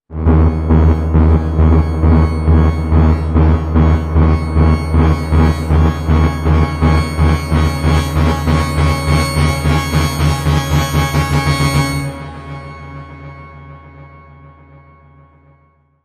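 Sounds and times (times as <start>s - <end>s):
musical sting: 0.1s - 13.6s.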